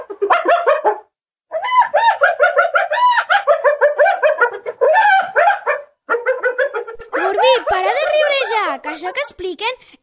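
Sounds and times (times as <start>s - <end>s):
attacked hyena calling with laughter-like yelping barks: 1.5s - 8.6s
speech: 8.8s - 10.0s.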